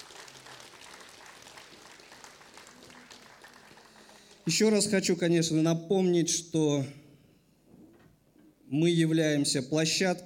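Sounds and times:
audience applause: 0.0 - 4.5
speech: 4.5 - 7.0, 8.7 - 10.2.

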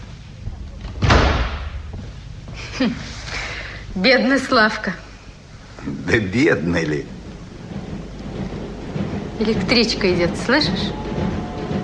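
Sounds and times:
door slammed shut: 0.8 - 1.9
speech: 2.8 - 3.2, 4.0 - 5.0, 5.8 - 7.2, 9.4 - 11.3.

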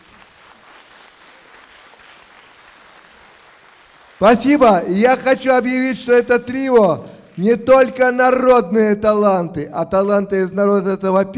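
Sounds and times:
audience applause: 0.0 - 8.0
speech: 4.2 - 11.3.

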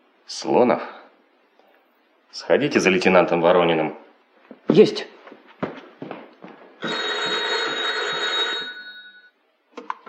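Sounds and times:
speech: 0.3 - 1.0, 2.3 - 4.0, 4.7 - 5.2
old telephone bell ringing: 6.8 - 9.4.

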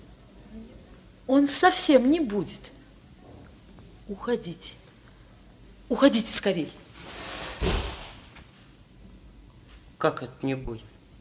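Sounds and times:
speech: 1.3 - 2.7, 4.1 - 4.8, 5.9 - 6.8, 10.0 - 10.9
door being slammed shut: 7.0 - 8.4.

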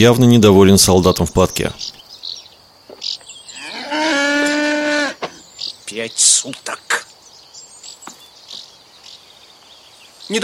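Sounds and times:
speech: 0.0 - 1.9, 5.9 - 7.0, 10.3 - 10.4
faint scattered noises: 0.0 - 10.4
cow mooing: 3.5 - 5.3.

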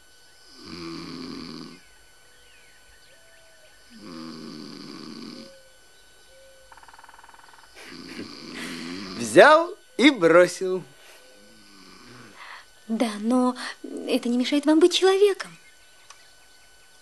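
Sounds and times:
man snoring while dozing in armchair: 0.4 - 1.9, 3.9 - 5.6, 7.7 - 9.7, 11.4 - 12.7
speech: 9.4 - 10.9, 12.9 - 15.6.

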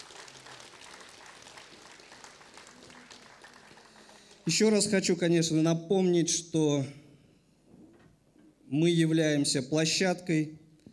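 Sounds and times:
audience applause: 0.0 - 4.5
speech: 4.5 - 7.0, 8.7 - 10.6.

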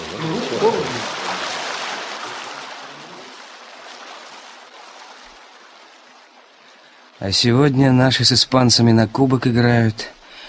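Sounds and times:
rain falling: 0.0 - 7.2
speech: 7.2 - 10.2.

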